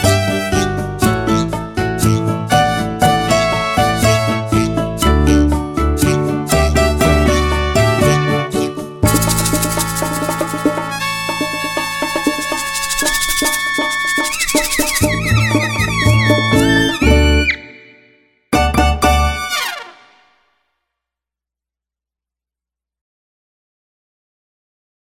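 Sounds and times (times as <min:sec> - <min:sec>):
backing track: 0:00.0 - 0:20.1.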